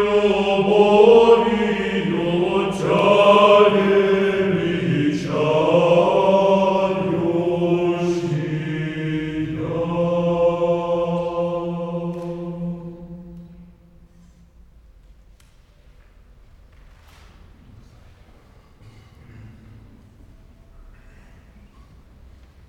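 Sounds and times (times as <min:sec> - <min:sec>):
choir of Old Believer parish singers of Siberia singing an irmos: 0:00.0 - 0:14.1.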